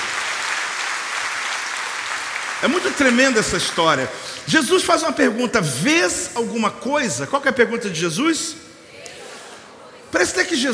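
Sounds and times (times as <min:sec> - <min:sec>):
audience applause: 0:00.0 - 0:04.2
speech: 0:02.6 - 0:08.7, 0:10.2 - 0:10.7.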